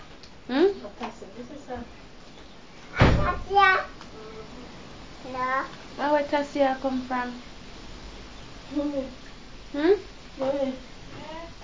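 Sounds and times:
door thud: 2.9 - 3.6
child talking: 2.9 - 5.8, 11.1 - 11.6
speech: 3.5 - 3.9, 5.4 - 7.5, 8.7 - 10.9.

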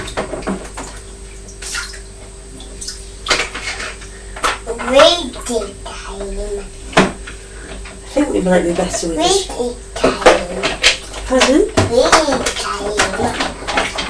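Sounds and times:
water poured through a green toy sieve: 0.0 - 5.7, 10.1 - 14.0
child talking: 4.6 - 6.8, 9.0 - 14.0
speech: 5.0 - 6.8, 8.2 - 9.9, 11.3 - 13.5.

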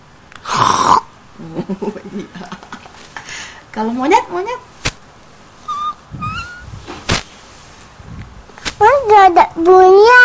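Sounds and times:
person imitating a pig with snorts and grunts: 0.4 - 1.1, 5.7 - 6.7
speech: 1.4 - 2.6, 3.8 - 4.7, 9.6 - 10.1.

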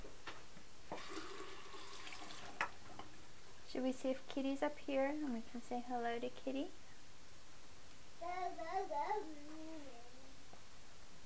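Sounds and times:
tap water rinsing a toothbrush: 0.9 - 2.8
speech: 3.8 - 6.8, 8.3 - 9.7.

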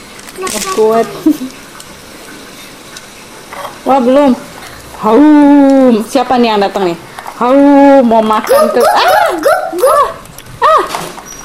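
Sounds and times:
speech: 0.4 - 1.7, 3.8 - 10.0
fierce dog barking: 8.5 - 10.2.

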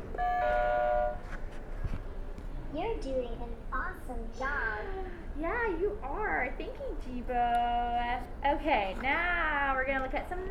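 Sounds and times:
electronic buzzer tone: 0.2 - 1.2
speech: 2.8 - 10.5.

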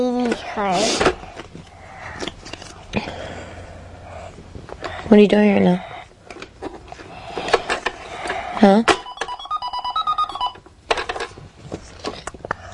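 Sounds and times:
speech: 0.0 - 1.3, 5.1 - 5.9, 8.6 - 9.0
toy cash register beeping: 8.6 - 11.2.

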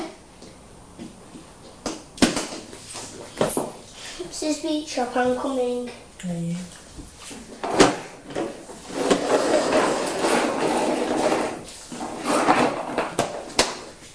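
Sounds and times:
speech: 4.4 - 6.8
toy truck rolling across a hard floor: 7.6 - 13.9.

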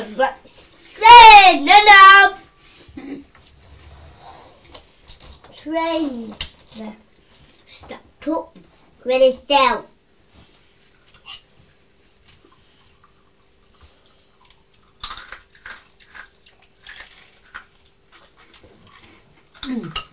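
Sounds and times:
speech: 0.2 - 2.4, 5.6 - 7.0, 7.8 - 9.9, 19.6 - 20.1
crunching toast: 14.4 - 19.1
crunching Hula Hoops crisps: 14.8 - 19.0.

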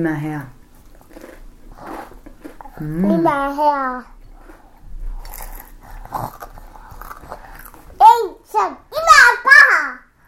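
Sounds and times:
speech: 0.0 - 0.6, 2.8 - 4.1, 6.1 - 6.5, 8.5 - 8.9
biting into and chewing cucumber bread: 0.8 - 3.5, 4.2 - 8.0.

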